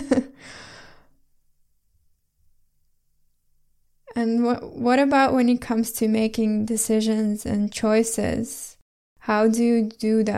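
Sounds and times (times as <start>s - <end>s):
person drawing a deep breath: 0.4s - 1.2s
speech: 4.2s - 10.3s.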